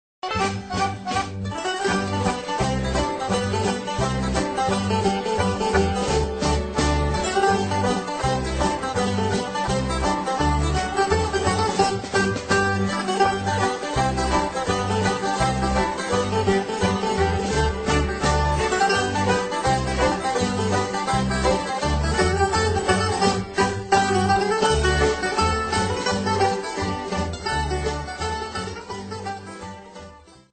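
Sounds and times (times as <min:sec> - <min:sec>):
music from Holland: 0:00.2 - 0:30.5.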